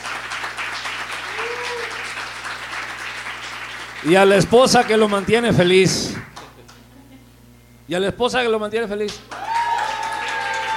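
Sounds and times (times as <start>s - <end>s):
audience applause: 0.0s - 5.8s, 9.3s - 10.7s
speech: 4.0s - 6.2s, 7.9s - 9.4s.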